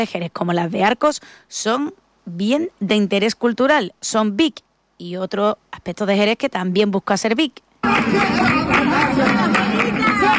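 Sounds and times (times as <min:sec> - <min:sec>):
speech: 0:00.0 - 0:10.3
crowd babble outside the Peña La Bulería flamenco club in Jerez at night: 0:07.8 - 0:10.3.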